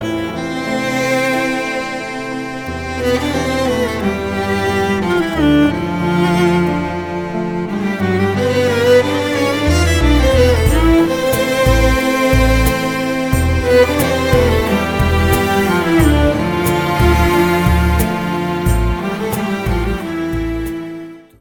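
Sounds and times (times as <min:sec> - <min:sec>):
instrumental music: 0:00.0 - 0:21.3.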